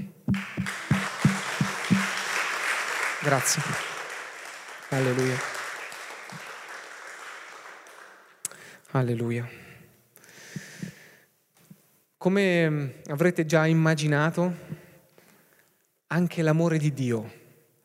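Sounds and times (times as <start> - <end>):
applause: 0.3 - 8.8
speech: 3.2 - 3.9, 4.9 - 5.6, 9.0 - 9.6, 12.2 - 14.8, 16.1 - 17.4.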